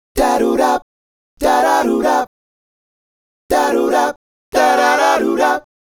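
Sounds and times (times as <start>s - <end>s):
male vocal group: 0.2s - 0.8s, 1.4s - 2.3s, 3.5s - 5.7s.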